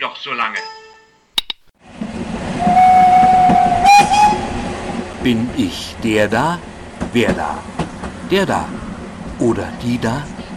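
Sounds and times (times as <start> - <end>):
speech: 0.2 - 0.8, 5.2 - 7.7, 8.3 - 8.8, 9.4 - 10.4
sharp clicks: 1.4 - 1.7
locomotive train rumbling: 1.9 - 10.5
locomotive train whistle: 2.4 - 5.1.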